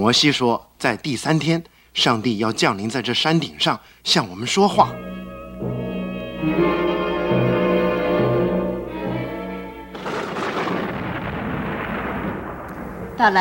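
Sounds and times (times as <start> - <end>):
speech: 0.0 - 5.1, 13.2 - 13.4
brassy tonal chord: 4.7 - 10.0
thunder rumbling: 9.9 - 13.4.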